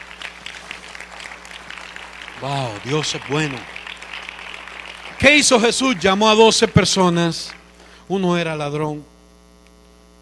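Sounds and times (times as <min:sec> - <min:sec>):
audience applauding: 0:00.0 - 0:07.8
speech: 0:02.4 - 0:03.8, 0:05.2 - 0:09.1.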